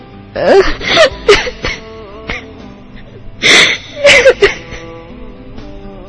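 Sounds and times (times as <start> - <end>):
sniffling: 0.4 - 4.9
person crying in sobbing bursts: 0.4 - 5.0.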